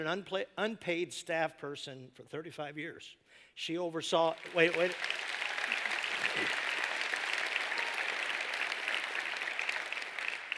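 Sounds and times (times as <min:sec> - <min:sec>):
speech: 0:00.0 - 0:05.3
audience applause: 0:04.2 - 0:10.5.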